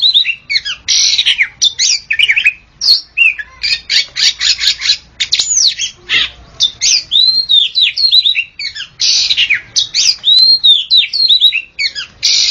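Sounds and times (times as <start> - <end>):
Oriental magpie-robin singing: 0.0 - 12.5.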